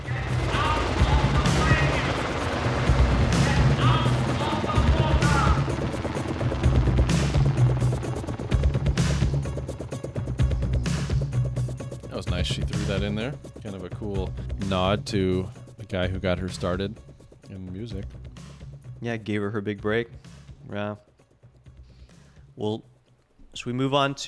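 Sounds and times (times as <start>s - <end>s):
helicopter sound effect: 0.0s - 17.5s
speech: 12.9s - 17.1s, 17.8s - 18.2s, 19.0s - 21.1s, 22.6s - 22.9s, 23.6s - 24.2s.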